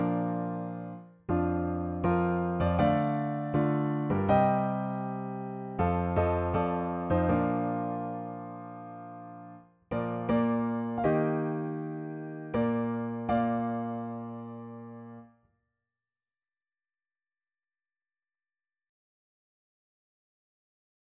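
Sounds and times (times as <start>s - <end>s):
music piece: 0.0s - 15.3s.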